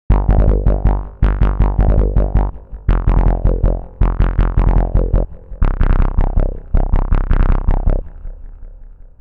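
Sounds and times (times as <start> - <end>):
16-step gated bass: 0.1 - 9.1.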